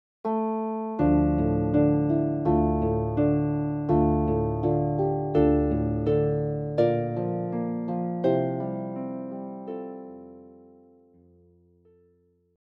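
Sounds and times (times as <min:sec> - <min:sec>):
harp: 0:01.0 - 0:12.2.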